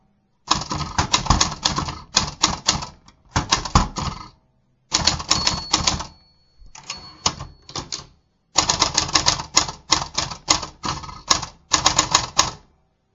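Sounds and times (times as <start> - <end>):
Olympia travel typewriter: 0.5 - 4.3, 4.9 - 6.2, 6.8 - 12.7.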